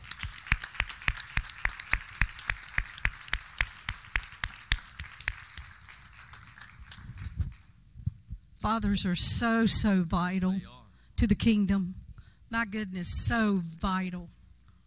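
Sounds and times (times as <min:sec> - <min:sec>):
audience clapping hands: 0:00.0 - 0:07.8
speech: 0:08.7 - 0:14.4.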